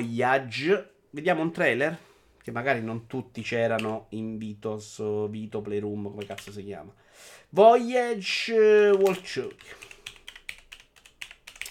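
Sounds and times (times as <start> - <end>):
speech: 0.0 - 9.9
typing on a computer keyboard: 6.1 - 6.6, 8.9 - 11.6.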